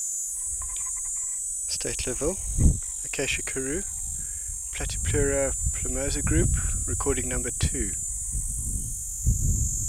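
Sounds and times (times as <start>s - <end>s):
cicada song at Steytlerville: 0.0s - 9.8s.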